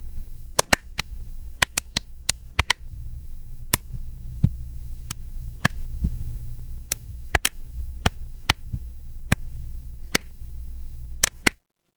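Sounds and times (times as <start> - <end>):
fireplace ambience: 0.0 - 11.6.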